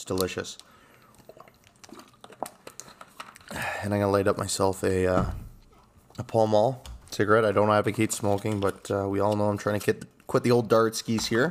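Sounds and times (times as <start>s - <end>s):
speech: 0.0s - 0.8s, 3.8s - 5.4s, 6.2s - 11.5s
person drinking sparkling water: 0.6s - 4.0s.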